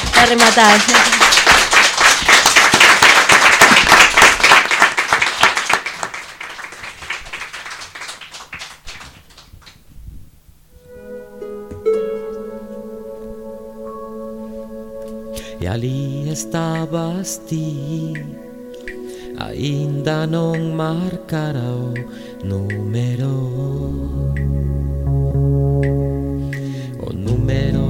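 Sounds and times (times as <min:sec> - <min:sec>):
group of children clapping: 0:00.0 - 0:09.8
speech: 0:00.2 - 0:01.2, 0:15.7 - 0:18.5, 0:19.4 - 0:26.2
music with sustained tones: 0:10.7 - 0:27.8.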